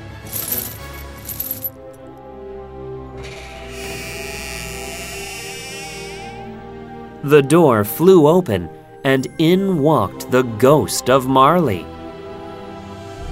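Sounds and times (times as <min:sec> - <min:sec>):
chains rattling: 0:00.2 - 0:02.0
speech: 0:07.2 - 0:12.0.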